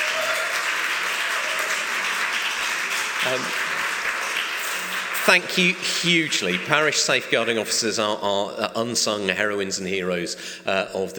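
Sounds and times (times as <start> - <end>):
audience applause: 0.0 - 7.8
speech: 3.2 - 3.6, 5.2 - 11.1.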